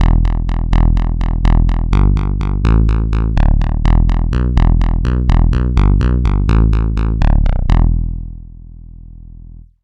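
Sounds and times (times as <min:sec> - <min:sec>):
synth bass: 0:00.0 - 0:09.8.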